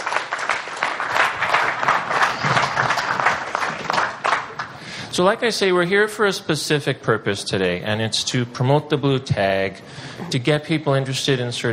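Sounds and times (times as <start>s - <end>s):
audience applause: 0.0s - 5.0s
speech: 5.2s - 11.7s.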